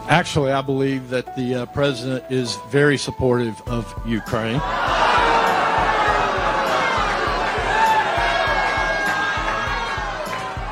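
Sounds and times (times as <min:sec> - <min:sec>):
speech: 0:00.1 - 0:05.0
crowd shouting and cheering at town hall: 0:04.2 - 0:10.6
low rhythmic thumping: 0:04.6 - 0:10.6.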